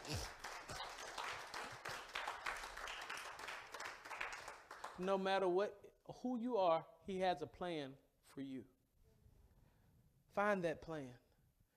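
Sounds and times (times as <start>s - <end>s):
audience hand clapping: 0.0s - 5.3s
speech: 5.0s - 8.8s, 10.4s - 11.2s.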